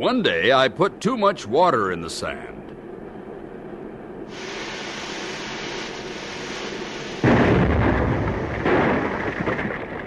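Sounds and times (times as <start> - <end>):
speech: 0.0 - 2.6
foundry mold explosion blast: 7.2 - 10.0.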